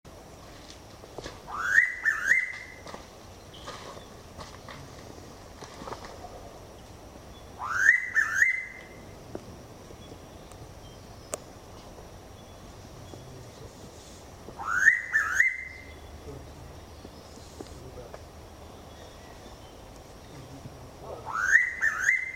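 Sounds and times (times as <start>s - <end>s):
noisy pitta Pitta versicolor giving loud whistled calls: 1.5s - 2.8s, 7.5s - 9.0s, 14.6s - 16.1s, 21.2s - 22.3s.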